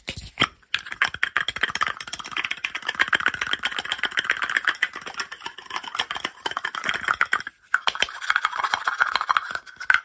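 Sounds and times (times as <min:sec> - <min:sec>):
fast aggressive lo-fi ASMR tapping and scratching: 0:00.0 - 0:10.0.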